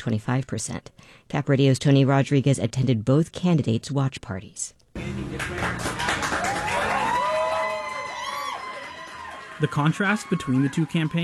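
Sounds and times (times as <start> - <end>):
speech: 0.0 - 6.4, 9.6 - 11.2
supporters applauding at an election night watch party in a Midtown restaurant: 5.0 - 11.2
supporters whooping: 5.7 - 11.2.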